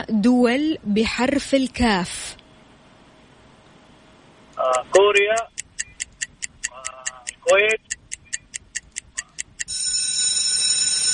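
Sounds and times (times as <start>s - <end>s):
speech: 0.0s - 2.4s, 4.6s - 5.6s, 7.5s - 7.9s
game bell ringing: 9.7s - 11.1s.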